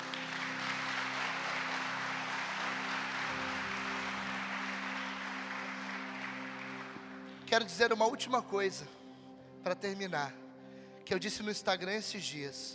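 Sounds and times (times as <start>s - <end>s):
audience applause: 0.0s - 7.5s
speech: 7.5s - 9.0s, 9.6s - 10.4s, 11.1s - 12.7s.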